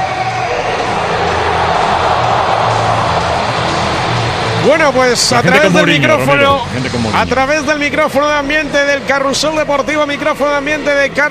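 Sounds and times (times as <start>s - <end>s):
large stadium crowd cheering and applauding: 0.1s - 6.5s
speech: 4.6s - 11.2s.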